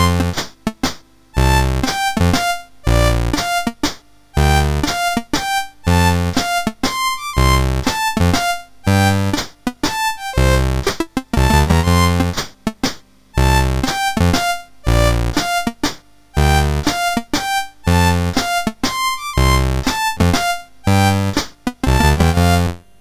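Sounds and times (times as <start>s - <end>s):
waltz on a MOS6581R4 sound chip: 0.0s - 22.9s.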